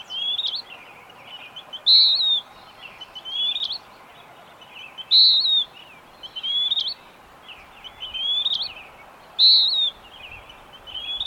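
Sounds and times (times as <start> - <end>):
bird singing bright falling whistled phrases: 0.0 - 0.8, 1.4 - 3.8, 4.8 - 7.0, 7.8 - 8.8, 9.4 - 11.2
background hiss: 0.0 - 11.2.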